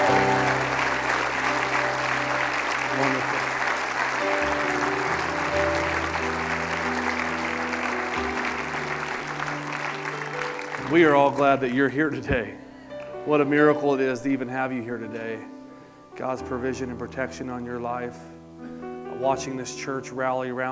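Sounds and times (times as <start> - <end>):
audience round of applause: 0.0 - 11.7
speech: 10.9 - 12.6, 13.2 - 15.6, 16.2 - 18.3, 19.2 - 20.6.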